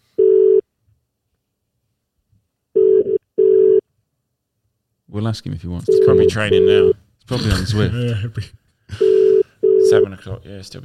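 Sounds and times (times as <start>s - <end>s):
telephone call ringing tone: 0.2s - 0.6s, 2.8s - 3.8s, 5.9s - 6.9s, 9.0s - 10.0s
speech: 5.2s - 9.0s, 9.9s - 10.8s.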